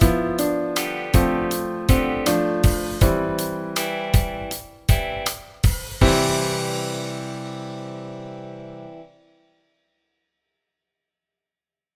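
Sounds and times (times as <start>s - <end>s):
music section without bass at 80 bpm: 0.0s - 9.2s.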